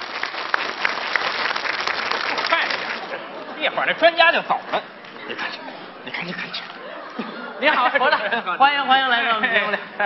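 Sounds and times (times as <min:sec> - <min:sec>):
audience applause: 0:00.0 - 0:03.2
speech: 0:03.6 - 0:05.5, 0:06.1 - 0:10.0.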